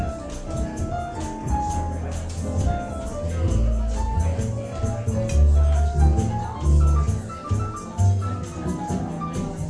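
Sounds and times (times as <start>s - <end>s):
jazz music: 0.0s - 9.6s.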